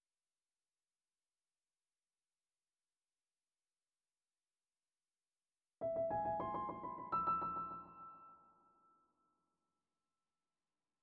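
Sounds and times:
piano piece with effects: 0:05.8 - 0:08.8.

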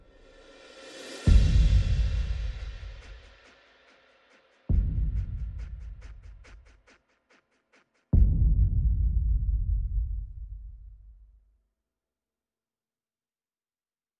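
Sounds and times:
percussion: 0:00.0 - 0:11.4.

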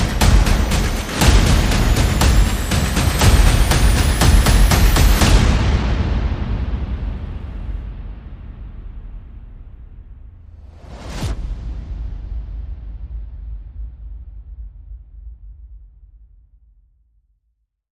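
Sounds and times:
sound effects: 0:00.0 - 0:07.8
percussion: 0:00.0 - 0:16.6.

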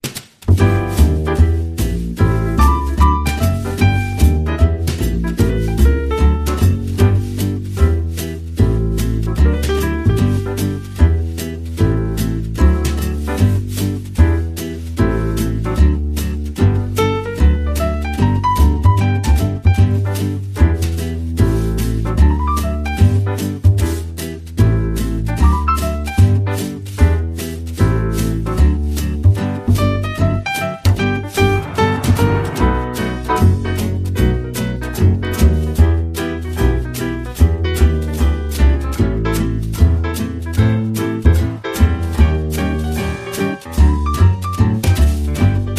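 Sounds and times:
rhythm section playing: 0:00.0 - 0:45.7.

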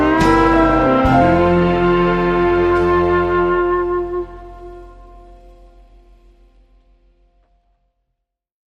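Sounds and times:
clarinet: 0:00.0 - 0:06.3.

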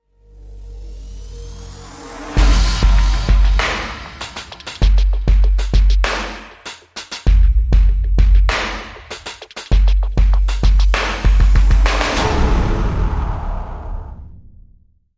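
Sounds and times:
sound effects: 0:00.3 - 0:04.8, 0:11.4 - 0:15.1
drums: 0:00.6 - 0:14.5.

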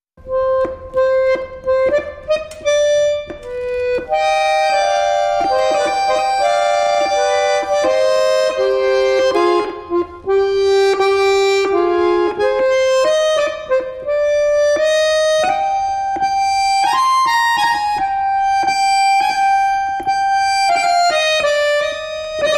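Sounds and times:
accordion solo: 0:00.2 - 0:22.5.

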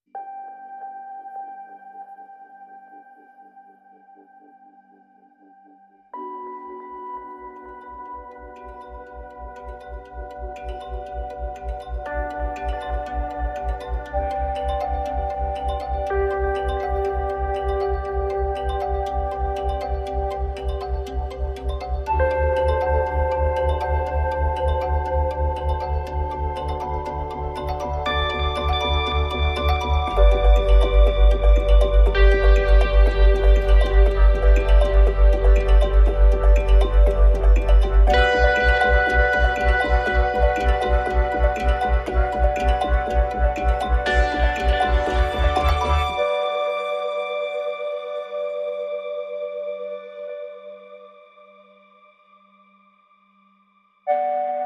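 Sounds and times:
mbira: 0:07.7 - 0:49.1.

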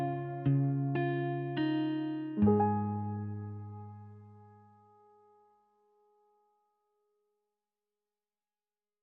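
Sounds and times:
music mix without drums or bass: 0:00.0 - 0:05.2.

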